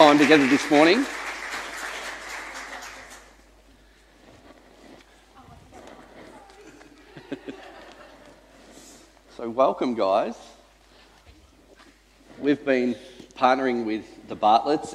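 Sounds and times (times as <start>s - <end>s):
audience applause: 0.0s - 3.5s
speech: 0.1s - 1.3s, 9.4s - 10.5s, 12.4s - 14.9s
laughter: 6.5s - 8.6s.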